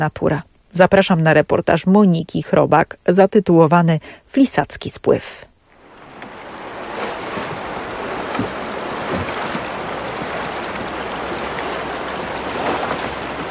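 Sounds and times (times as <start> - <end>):
speech: 0.0 - 5.5
rushing current of the Dunajec mountain river: 5.7 - 13.4
water splashes and knocks: 5.8 - 13.4.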